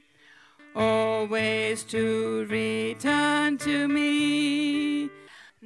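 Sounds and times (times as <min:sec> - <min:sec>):
bass voice part singing: 0:00.8 - 0:05.0.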